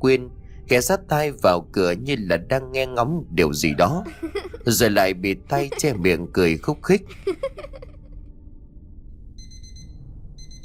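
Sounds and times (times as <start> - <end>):
speech: 0.0 - 7.7
laughter: 3.4 - 7.9
alarm clock ringing: 9.4 - 10.6.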